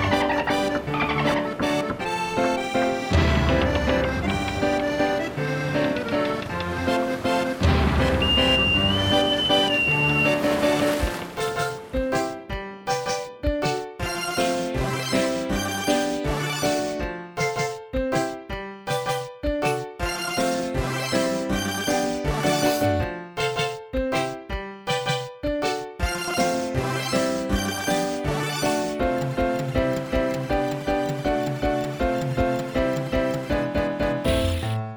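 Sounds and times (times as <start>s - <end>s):
backing music: 0.0s - 34.8s.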